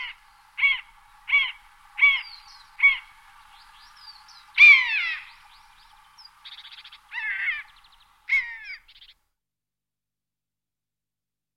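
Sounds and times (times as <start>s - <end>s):
long-legged buzzard giving short downward-slurring mewing calls: 0.0s - 3.2s, 4.6s - 5.4s, 6.9s - 8.8s.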